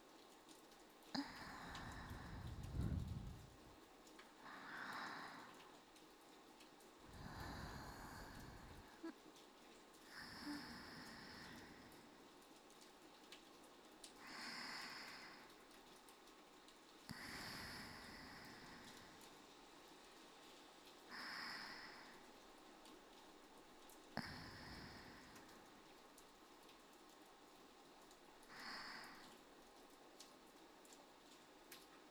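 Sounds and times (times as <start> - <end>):
rain: 0.0 - 32.0
sleep breathing loop for ASMR: 1.2 - 3.7, 4.4 - 5.6, 7.1 - 9.1, 10.1 - 12.2, 17.1 - 19.3, 24.2 - 25.7, 28.5 - 29.4.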